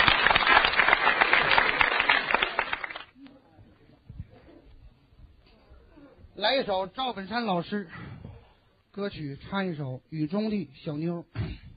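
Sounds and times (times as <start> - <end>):
audience applause: 0.0 - 3.1
speech: 6.4 - 8.0, 9.0 - 11.6.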